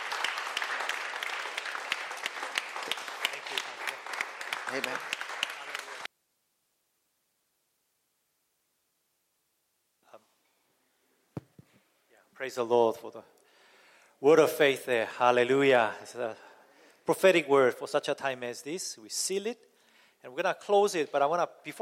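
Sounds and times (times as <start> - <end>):
audience applause: 0.0 - 6.1
speech: 4.7 - 5.1, 12.4 - 13.4, 14.2 - 16.4, 17.1 - 21.8.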